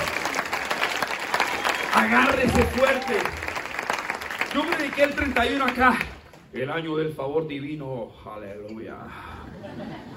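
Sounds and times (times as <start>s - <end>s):
audience clapping: 0.0s - 6.6s
speech: 2.0s - 3.4s, 4.5s - 10.1s
laughter: 9.3s - 10.1s.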